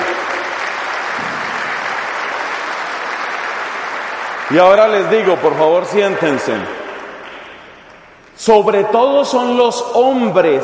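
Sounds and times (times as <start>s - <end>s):
audience applause: 0.0s - 8.1s
speech: 4.5s - 6.8s, 8.4s - 10.6s.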